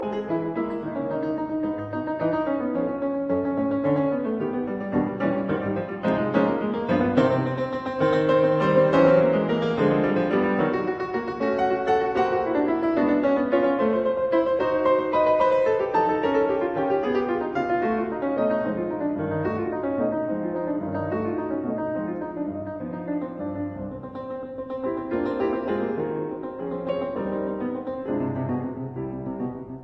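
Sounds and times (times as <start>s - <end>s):
prelude in C minor allegro: 0.0s - 29.8s.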